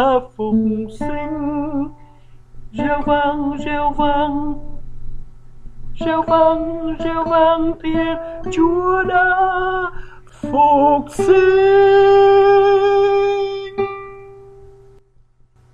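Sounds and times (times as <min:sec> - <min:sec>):
soprano singing: 0:00.0 - 0:02.0, 0:02.7 - 0:04.8, 0:06.0 - 0:14.2.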